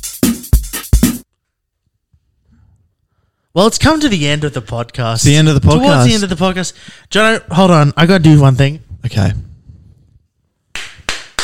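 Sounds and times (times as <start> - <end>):
speech: 3.6 - 9.5
hand clapping: 10.7 - 11.4.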